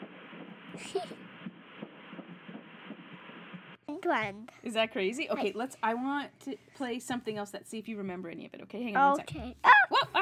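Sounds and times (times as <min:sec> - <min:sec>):
fast fetal heartbeat on a prenatal ultrasound monitor: 0:00.0 - 0:03.8
constant hiss of static: 0:00.0 - 0:03.9
speech: 0:00.8 - 0:01.2, 0:04.0 - 0:10.2.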